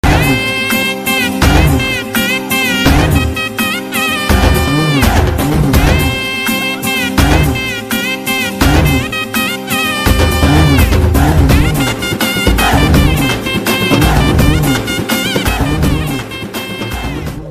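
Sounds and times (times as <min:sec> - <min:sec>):
Tamil background music: 0:00.0 - 0:17.4.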